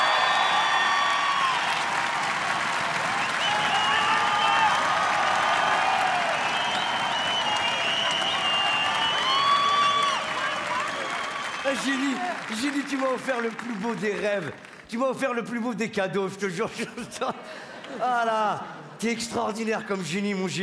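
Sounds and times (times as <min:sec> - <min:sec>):
scattered cheers whoops and whistles: 0:00.0 - 0:12.6
large audience applause: 0:00.0 - 0:14.9
speech: 0:11.8 - 0:20.6.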